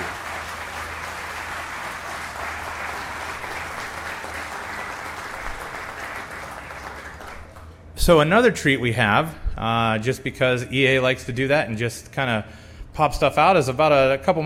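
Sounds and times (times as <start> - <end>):
audience applause: 0.0 - 7.8
speech: 8.0 - 14.4.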